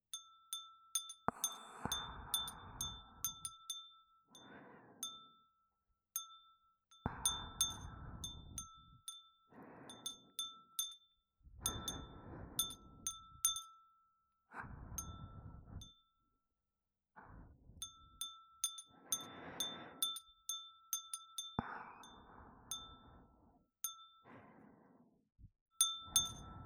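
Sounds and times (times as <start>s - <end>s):
glass wind chime: 0.0s - 14.2s, 15.0s - 16.2s, 17.8s - 24.3s, 25.8s - 26.6s
breathing: 1.3s - 3.7s, 4.3s - 5.4s, 7.1s - 10.6s, 11.5s - 13.6s, 14.5s - 16.0s, 17.2s - 20.4s, 21.6s - 25.3s, 26.0s - 26.6s.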